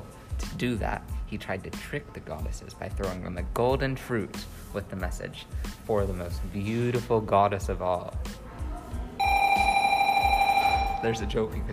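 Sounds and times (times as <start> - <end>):
speech: 0.6 - 8.4, 11.0 - 11.7
smoke alarm going off: 9.2 - 11.3.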